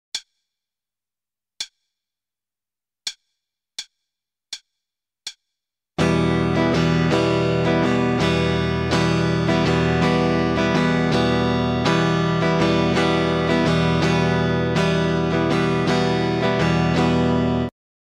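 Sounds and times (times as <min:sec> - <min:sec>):
starter guitar rhythm: 0:06.0 - 0:17.7.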